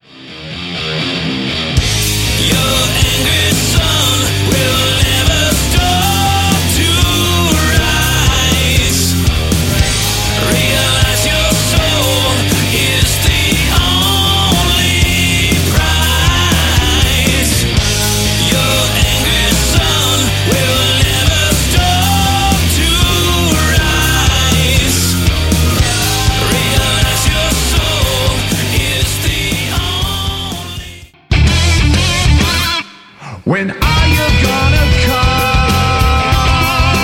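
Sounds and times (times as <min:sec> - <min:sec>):
metal music: 0:00.0 - 0:37.0.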